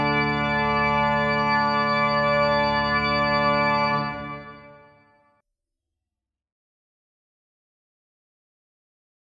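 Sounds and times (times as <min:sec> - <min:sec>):
chorale prelude: 0:00.0 - 0:05.1.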